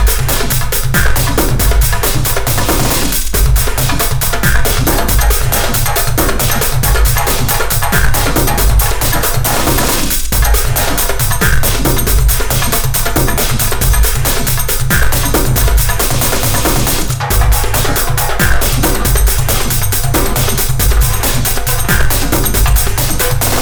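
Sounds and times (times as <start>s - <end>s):
drums test: 0.0s - 23.6s.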